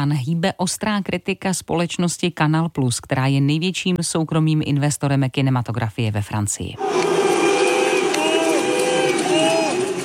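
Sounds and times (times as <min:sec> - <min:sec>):
speech: 0:00.0 - 0:07.3
cinema audience booing: 0:06.8 - 0:10.0
cinema audience whistling: 0:07.4 - 0:09.8.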